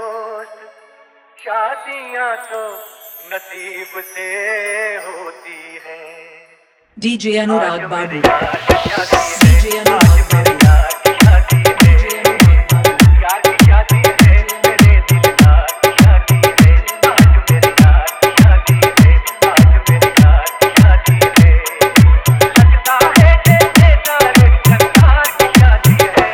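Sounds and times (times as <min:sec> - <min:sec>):
dholak wedding dance mix: 0:07.7 - 0:26.3.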